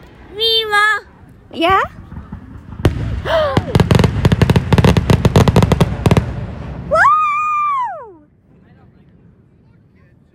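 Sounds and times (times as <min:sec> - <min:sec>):
fireworks cracking and booming: 0:01.4 - 0:07.5
speech: 0:01.5 - 0:02.0.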